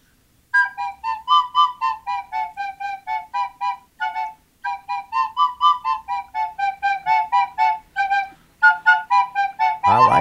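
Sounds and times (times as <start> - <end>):
reedy whistle-like melody played through the nostrils on small pipes: 0.5 - 10.1.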